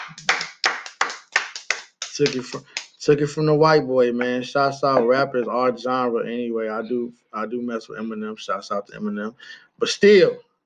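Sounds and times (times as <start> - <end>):
round of applause, hands clapping: 0.0 - 3.2
speech: 2.2 - 10.5.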